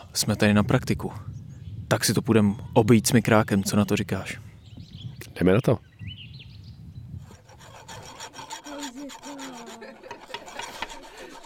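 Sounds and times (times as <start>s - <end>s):
soft voices: 0.0s - 1.2s, 8.4s - 11.4s
speech: 0.2s - 4.5s, 5.4s - 5.9s
hand files rasping against metal coins: 7.2s - 11.4s.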